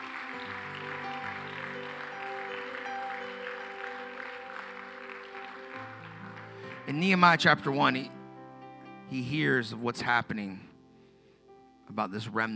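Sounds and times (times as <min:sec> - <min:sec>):
audience applause: 0:00.0 - 0:07.6
speech: 0:06.9 - 0:08.2, 0:09.1 - 0:10.7, 0:11.9 - 0:12.5.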